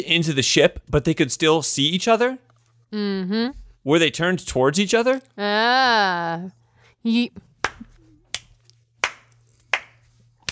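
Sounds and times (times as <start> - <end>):
speech: 0.0 - 7.5
person humming: 3.0 - 3.7
sharp hand claps: 7.6 - 10.5.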